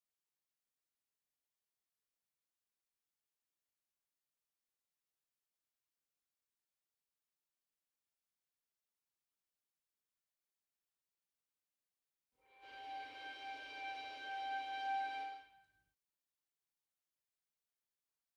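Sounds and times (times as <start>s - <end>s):
sustained violin harmonics: 12.5s - 15.5s.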